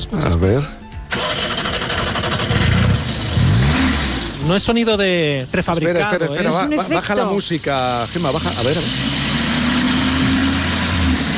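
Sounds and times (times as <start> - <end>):
speech: 0.0 - 0.8, 4.5 - 9.2
combustion car engine revving: 1.1 - 4.7, 8.0 - 11.3.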